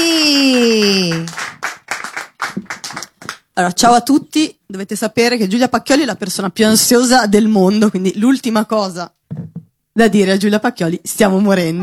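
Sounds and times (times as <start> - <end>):
audience applause: 0.3 - 3.4
speech: 3.6 - 11.8.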